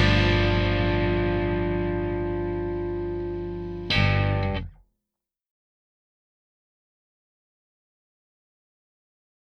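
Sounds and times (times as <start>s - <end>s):
drumless backing track: 0.0s - 4.8s.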